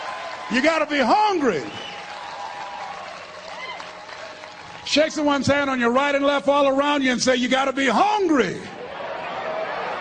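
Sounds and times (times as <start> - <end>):
audience applause at a motivational speaking event: 0.0 - 5.4, 9.0 - 10.0
speech: 0.5 - 1.9, 4.9 - 8.8.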